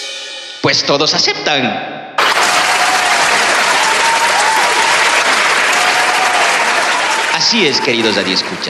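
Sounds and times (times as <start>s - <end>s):
speech: 0.7s - 1.9s, 7.4s - 8.6s
group of friends clapping and cheering: 2.2s - 8.6s
faint whoops: 2.3s - 8.0s.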